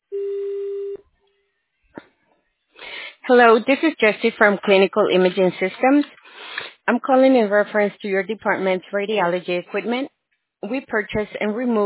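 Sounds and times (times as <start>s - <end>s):
steady voicemail beep: 0.1s - 1.0s
speech: 3.3s - 6.2s, 6.9s - 11.8s.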